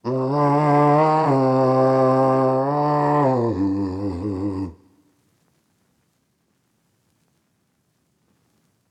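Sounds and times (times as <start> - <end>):
wet soul vocal melodies in G minor: 0.0 - 5.0.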